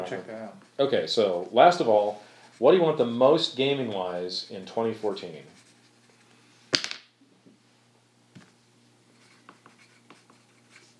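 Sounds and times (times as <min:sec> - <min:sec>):
speech: 0:00.0 - 0:05.6
pencil scratching on paper: 0:01.2 - 0:06.2, 0:09.2 - 0:10.9.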